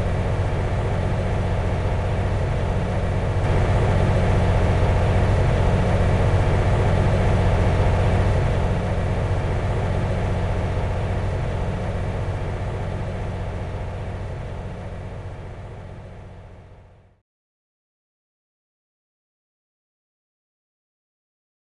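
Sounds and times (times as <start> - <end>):
ending cutscene ambient music: 0.2 - 15.6.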